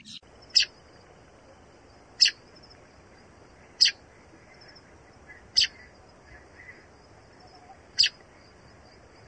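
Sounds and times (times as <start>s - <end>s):
baya weaver: 0.0s - 0.9s, 2.1s - 8.4s.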